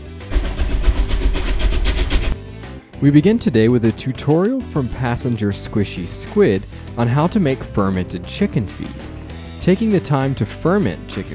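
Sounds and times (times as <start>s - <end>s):
steam train: 0.3s - 2.4s
speech: 3.0s - 11.3s.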